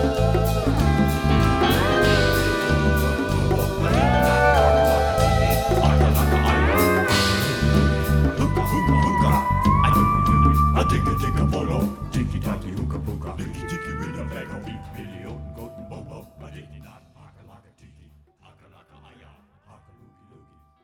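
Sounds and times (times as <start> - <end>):
bongo drums: 0.0 - 16.2.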